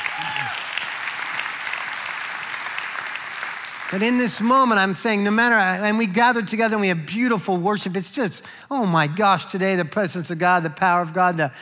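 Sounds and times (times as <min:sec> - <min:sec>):
audience hand clapping: 0:00.0 - 0:05.7
speech: 0:03.9 - 0:11.5.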